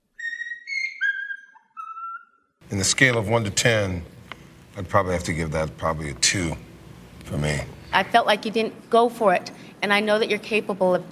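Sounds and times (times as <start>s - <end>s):
Quaker parrot whistling: 0.0s - 2.6s
speech: 2.7s - 4.2s, 4.8s - 6.7s, 7.3s - 11.1s.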